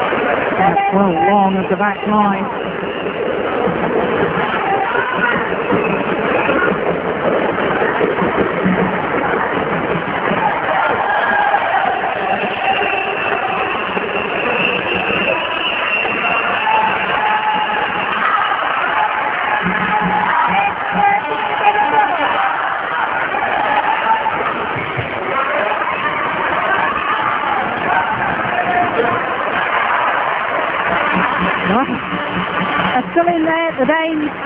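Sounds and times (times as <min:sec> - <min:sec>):
shouts from a sports crowd: 0:00.0 - 0:34.4
sports crowd cheering players on: 0:00.0 - 0:34.4
speech: 0:00.9 - 0:03.2.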